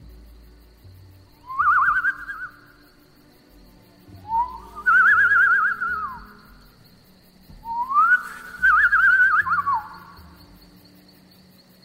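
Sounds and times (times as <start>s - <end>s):
person whistling through pursed lips imitating a bird: 1.4s - 2.8s, 4.2s - 6.6s, 7.6s - 10.2s.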